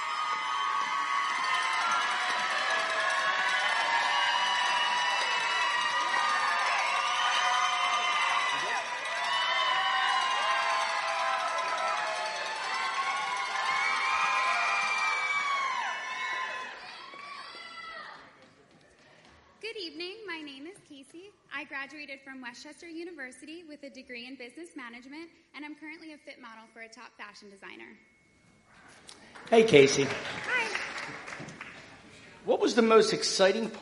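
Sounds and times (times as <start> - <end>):
clapping: 0.0 - 15.6, 29.1 - 32.0
crowd cheering and whooping for contestants: 0.0 - 18.3
speech: 22.2 - 28.2, 29.5 - 30.8, 32.4 - 33.8.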